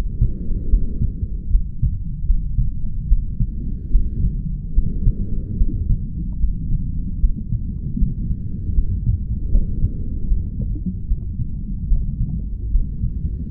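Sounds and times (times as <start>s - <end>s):
sounds inside a mother's womb: 0.0s - 13.4s.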